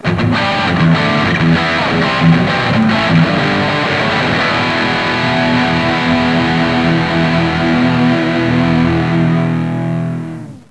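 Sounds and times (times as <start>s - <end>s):
rock music ringtone: 0.0s - 10.4s.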